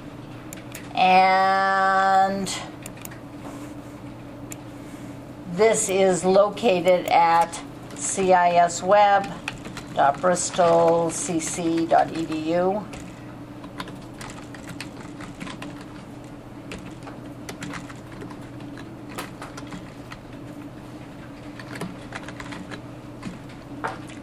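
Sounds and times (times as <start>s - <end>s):
speech: 1.0s - 2.7s, 5.6s - 9.4s, 10.0s - 13.0s
rapid typing on a computer keyboard: 9.2s - 16.0s, 16.7s - 20.2s, 21.4s - 24.2s.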